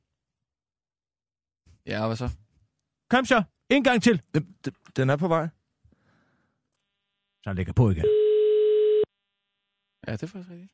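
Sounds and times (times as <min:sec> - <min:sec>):
speech: 0:01.8 - 0:02.4, 0:03.1 - 0:05.6, 0:07.4 - 0:08.2, 0:10.0 - 0:10.7
automated phone message: 0:07.9 - 0:09.1.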